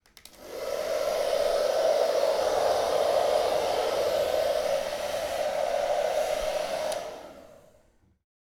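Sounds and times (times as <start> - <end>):
hairdryer blowing: 0.2 - 8.2.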